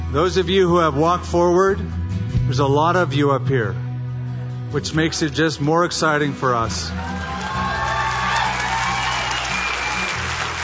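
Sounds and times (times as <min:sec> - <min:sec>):
speech: 0:00.1 - 0:03.8, 0:04.7 - 0:07.3
audience clapping: 0:07.0 - 0:10.5.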